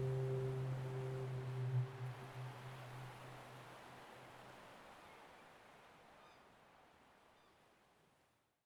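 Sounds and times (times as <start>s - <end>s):
ship horn: 0.0s - 3.7s.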